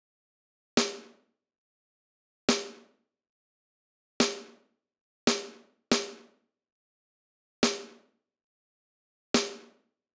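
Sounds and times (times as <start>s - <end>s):
snare drum: 0.8s - 1.1s, 2.5s - 2.8s, 4.2s - 4.6s, 5.3s - 6.2s, 7.6s - 8.0s, 9.4s - 9.7s.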